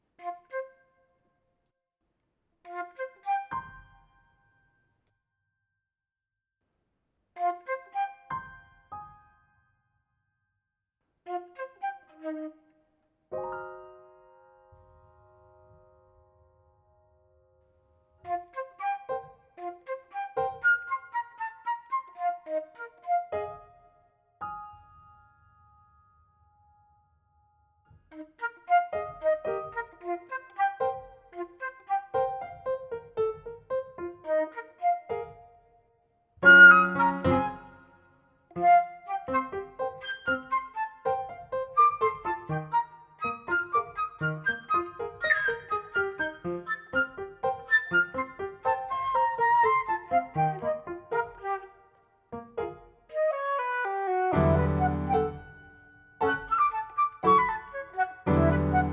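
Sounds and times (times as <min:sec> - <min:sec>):
flute: 0:00.0 - 0:01.0, 0:02.7 - 0:04.4, 0:07.4 - 0:09.3, 0:11.3 - 0:14.2, 0:18.2 - 0:24.1, 0:27.9 - 0:35.7, 0:36.4 - 0:52.1, 0:53.1 - 0:58.9.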